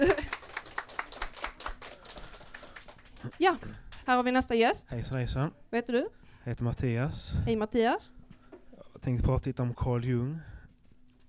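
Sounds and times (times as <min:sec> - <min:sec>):
audience applause: 0:00.0 - 0:03.7
speech: 0:03.4 - 0:08.2, 0:09.0 - 0:10.5.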